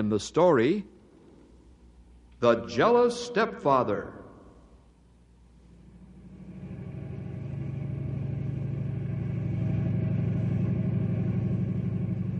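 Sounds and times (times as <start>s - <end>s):
speech: 0.0s - 0.9s, 2.4s - 4.2s
snowmobile engine gliding along a highway: 5.8s - 12.3s.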